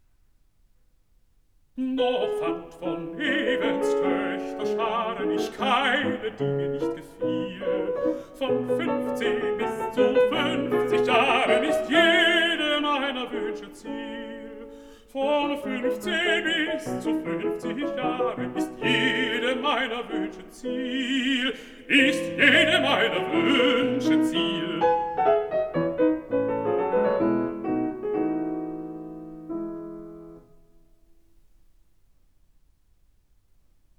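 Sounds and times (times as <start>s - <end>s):
piano: 1.7s - 32.4s
person singing: 1.8s - 25.5s.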